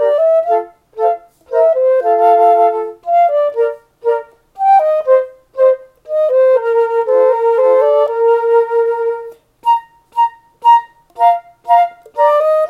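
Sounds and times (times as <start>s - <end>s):
trio with percussion playing German dance: 0.0s - 12.6s.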